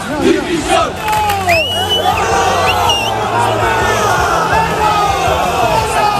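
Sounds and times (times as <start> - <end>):
angry football fans shouting and jeering: 0.0 - 6.1
whistles: 1.4 - 3.2.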